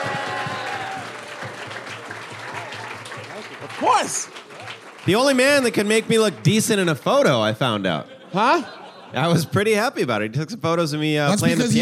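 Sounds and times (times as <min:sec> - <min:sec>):
cheers and whoops: 0:00.0 - 0:01.8
audience applause: 0:00.0 - 0:07.5
speech: 0:03.8 - 0:04.4, 0:05.0 - 0:11.7
laughter: 0:07.7 - 0:10.0.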